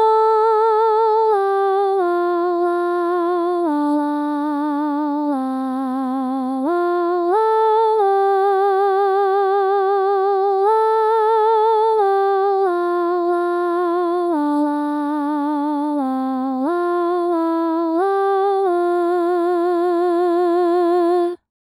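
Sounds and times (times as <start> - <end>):
soprano singing: 0.0 - 21.5.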